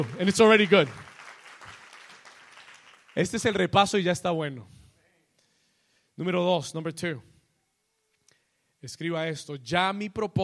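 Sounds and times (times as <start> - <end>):
speech: 0.0 - 1.1, 3.2 - 4.8, 6.2 - 7.3, 8.8 - 10.4
audience applause: 0.0 - 3.5.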